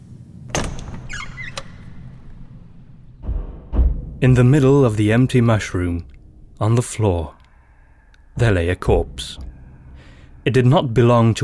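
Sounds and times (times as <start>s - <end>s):
low rumbling hum: 0.0s - 11.4s
door opening with a sharp knock-like clunk: 0.5s - 2.6s
creaking door hinges: 0.5s - 4.1s
dull thud: 3.1s - 4.3s
speech: 4.2s - 7.4s, 8.4s - 9.5s, 10.4s - 11.4s.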